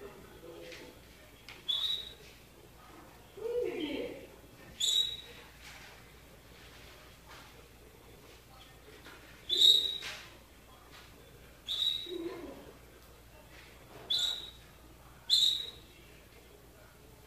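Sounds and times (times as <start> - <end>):
canary song with fast rolling trill: 1.7 - 2.2, 4.8 - 5.4, 9.5 - 10.2, 11.7 - 12.5, 14.1 - 14.7, 15.3 - 15.9.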